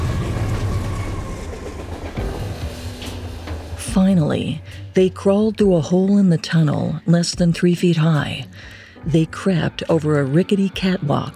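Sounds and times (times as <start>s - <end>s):
subway train rumbling through tunnel: 0.0s - 5.9s
speech: 4.0s - 11.3s.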